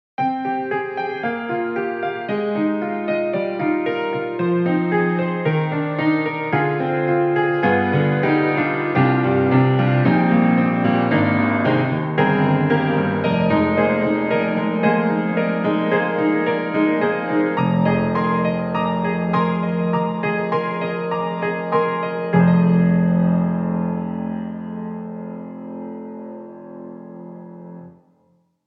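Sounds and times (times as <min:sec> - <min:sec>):
studio grand piano: 0:00.2 - 0:28.6.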